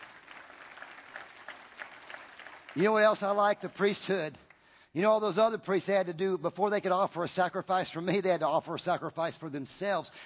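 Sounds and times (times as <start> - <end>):
church congregation applauding as a clap offering: 0.0 - 4.8
speech: 2.8 - 4.4, 5.0 - 10.2.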